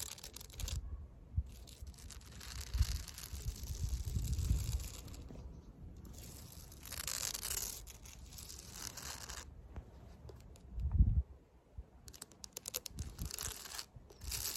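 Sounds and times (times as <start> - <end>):
fake nails scratching across concrete: 0.0 - 0.8, 1.4 - 9.5, 12.0 - 14.5.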